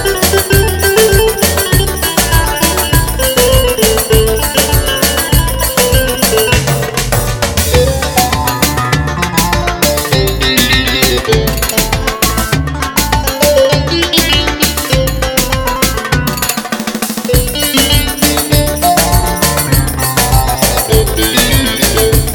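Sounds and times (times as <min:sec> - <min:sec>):
Roland GW-8 keyboard playing Ankara dance tune: 0:00.0 - 0:22.3.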